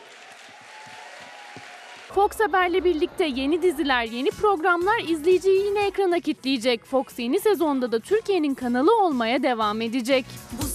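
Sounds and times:
applause: 0:00.0 - 0:03.9
speech: 0:02.1 - 0:10.6.

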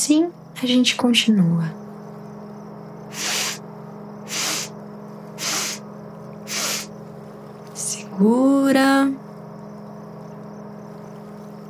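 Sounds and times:
speech: 0:00.0 - 0:01.8, 0:08.2 - 0:09.2
breathing out through the nose during a relaxation breathing exercise: 0:03.1 - 0:03.6, 0:04.3 - 0:04.7, 0:05.4 - 0:05.8, 0:06.5 - 0:06.9.

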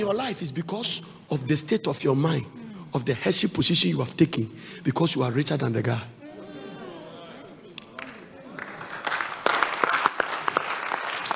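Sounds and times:
speech: 0:00.0 - 0:06.2
murmuring voices: 0:06.2 - 0:08.9
audience clapping: 0:07.7 - 0:11.3.

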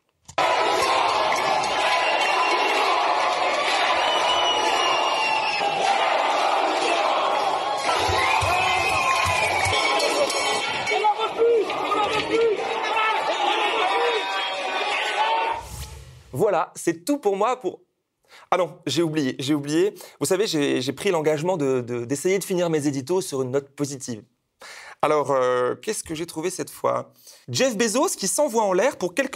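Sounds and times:
angry protest crowd shouting at town hall: 0:00.3 - 0:15.7
speech: 0:16.8 - 0:29.3.

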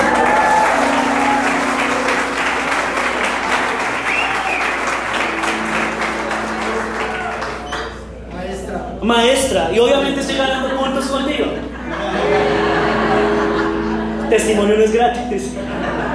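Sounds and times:
audience clapping: 0:00.0 - 0:08.2
speech: 0:09.1 - 0:11.5, 0:14.3 - 0:15.8
laughter: 0:11.6 - 0:14.8, 0:15.4 - 0:16.1.

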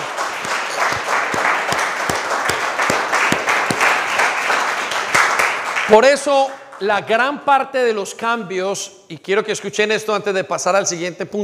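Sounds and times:
audience applause: 0:00.0 - 0:06.9
speech: 0:05.9 - 0:11.4.

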